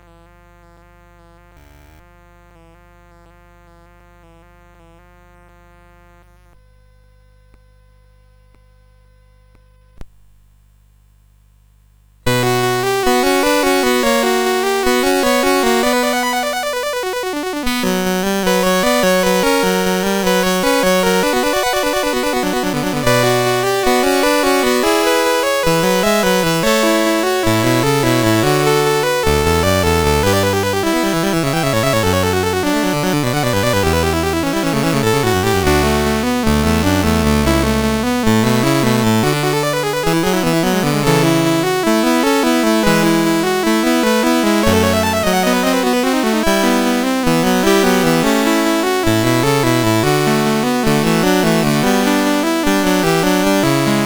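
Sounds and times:
chiptune invention in B minor on CSG8580R5 chip: 12.3s - 54.0s.

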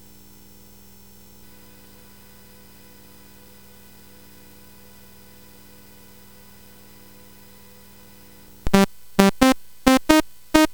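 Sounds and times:
SID CSG8580R5 chip game music: 8.7s - 10.7s.

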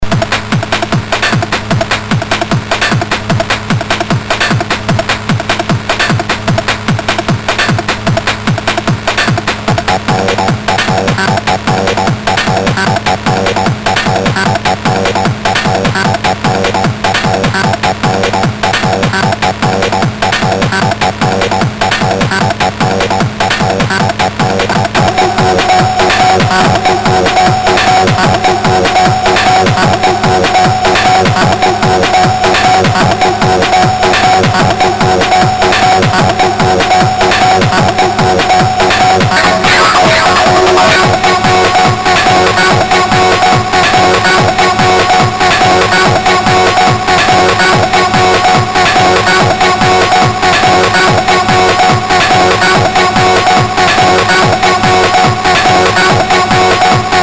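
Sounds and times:
drums on SID MOS6581R4 sound chip: 0.0s - 57.2s.

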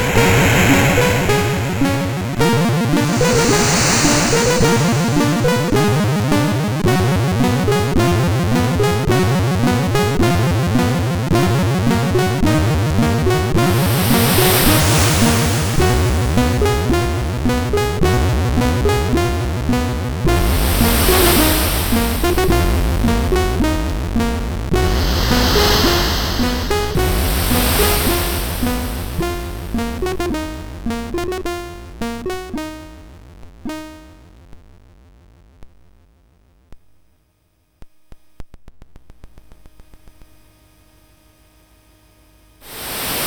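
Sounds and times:
carillon melody on MOS6581R4 SID chip: 0.0s - 34.3s.

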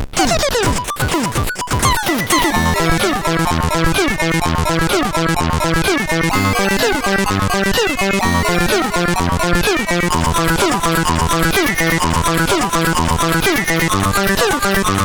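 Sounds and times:
outer space sounds from a CSG8580R5 sound chip: 0.2s - 15.0s.

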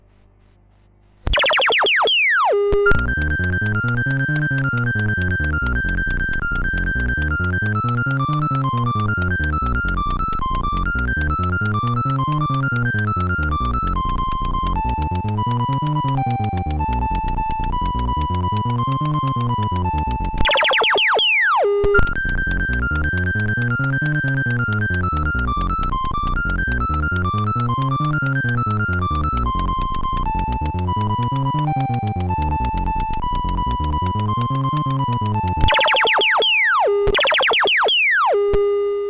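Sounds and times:
MOS6581R4 chiptune game music: 1.3s - 38.9s.

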